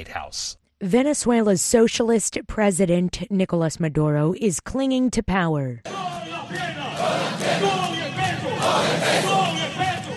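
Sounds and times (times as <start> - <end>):
speech: 0.0 - 6.8
troops singing and chanting: 5.9 - 10.1
troops clapping: 6.5 - 10.1.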